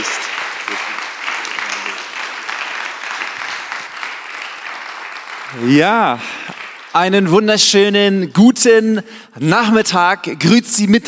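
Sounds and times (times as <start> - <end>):
audience applause: 0.0 - 7.2
speech: 5.5 - 11.0.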